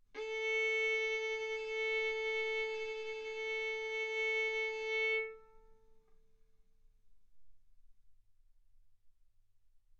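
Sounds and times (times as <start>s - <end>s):
violin arco on A string: 0.2s - 5.9s.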